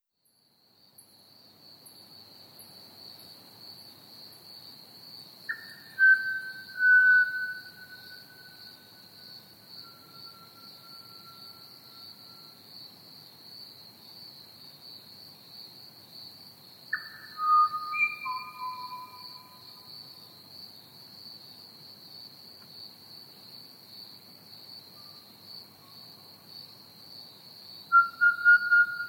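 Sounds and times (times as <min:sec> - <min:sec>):
Pied Butcherbird song: 0:05.5 - 0:12.2, 0:16.9 - 0:19.7, 0:27.9 - 0:29.0.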